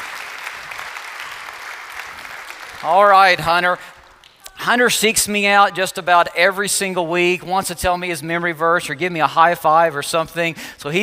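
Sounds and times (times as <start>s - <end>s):
audience applause: 0.0s - 4.3s
speech: 2.8s - 4.0s, 4.6s - 11.0s.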